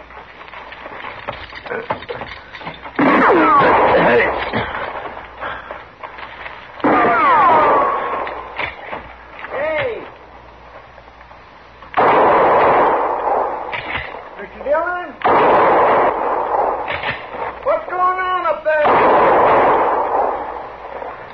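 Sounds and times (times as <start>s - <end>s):
heavy gunshots in a western drama: 3.0s - 5.7s, 6.8s - 10.1s, 11.9s - 21.3s
man speaking: 9.5s - 10.1s, 14.4s - 15.2s, 17.6s - 18.9s.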